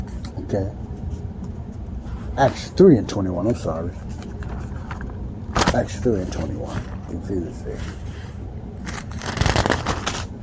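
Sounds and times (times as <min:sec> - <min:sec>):
speech: 0:00.5 - 0:00.9, 0:02.4 - 0:04.2, 0:05.7 - 0:08.0
pages of a book being folded: 0:03.9 - 0:10.3.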